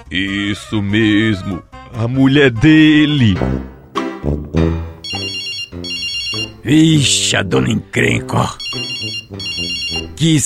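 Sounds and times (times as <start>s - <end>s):
speech: 0.0s - 4.8s, 6.6s - 10.4s
telephone ringing: 5.0s - 6.6s, 8.6s - 10.1s.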